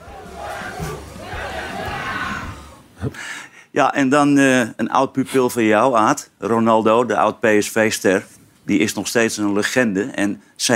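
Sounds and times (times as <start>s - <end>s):
football fans cheering: 0.0s - 2.9s
speech: 3.0s - 10.7s.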